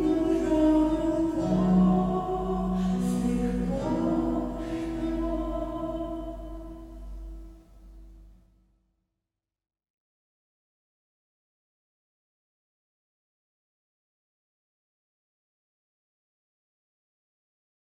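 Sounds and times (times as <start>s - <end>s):
woman's voice: 0.0s - 6.9s.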